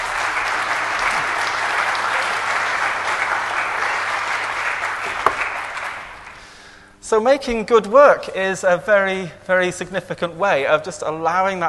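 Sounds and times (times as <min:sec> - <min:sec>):
audience applause: 0:00.0 - 0:06.4
speech: 0:07.1 - 0:11.6.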